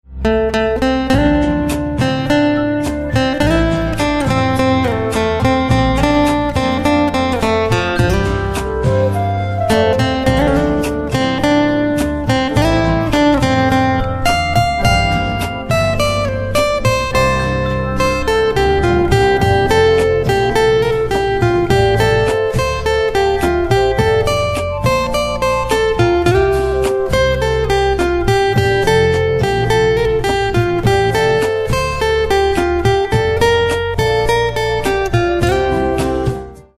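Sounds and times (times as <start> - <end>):
guitar: 0.0 - 36.7.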